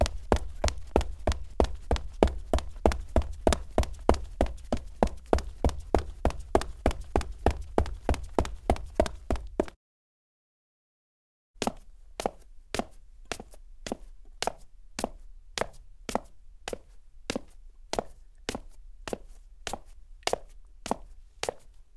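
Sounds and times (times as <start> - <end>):
foley footsteps on clean cement: 0.0 - 9.8, 11.6 - 21.7.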